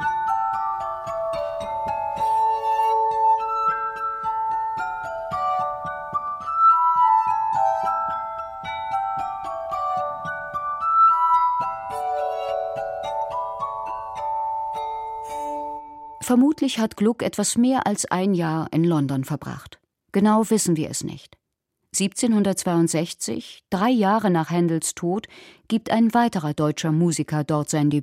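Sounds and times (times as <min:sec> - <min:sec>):
glass harmonica played on water-filled glasses: 0:00.0 - 0:16.6
speech: 0:16.3 - 0:21.3, 0:22.0 - 0:28.0.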